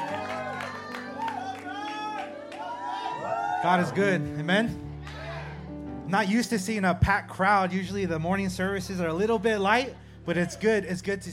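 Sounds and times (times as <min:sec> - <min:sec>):
audience applause: 0:00.0 - 0:04.2, 0:05.0 - 0:05.7
speech: 0:03.6 - 0:04.9, 0:06.1 - 0:11.3.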